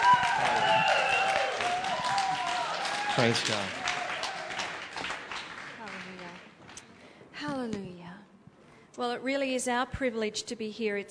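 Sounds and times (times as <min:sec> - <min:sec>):
congregation clapping to welcome guests at a church service: 0:00.0 - 0:07.0
speech: 0:03.2 - 0:03.8, 0:09.2 - 0:11.1.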